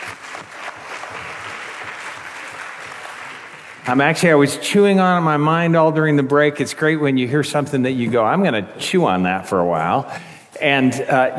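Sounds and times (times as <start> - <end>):
audience applause: 0.0 - 4.2
speech: 3.9 - 11.3.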